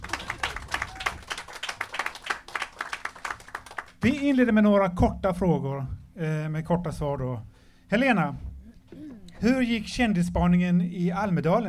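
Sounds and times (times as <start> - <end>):
audience applause: 0.0 - 4.0
speech: 4.0 - 8.5, 9.4 - 11.6.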